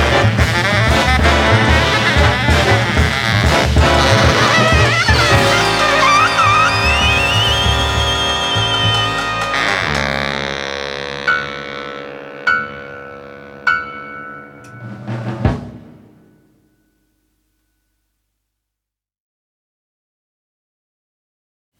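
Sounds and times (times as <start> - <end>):
gentle forest jazz: 0.0 - 15.6.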